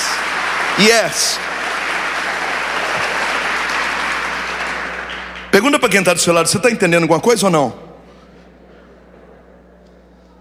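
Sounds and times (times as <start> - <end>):
crowd applauding: 0.0 - 6.8
speech: 0.8 - 1.6, 5.5 - 7.8.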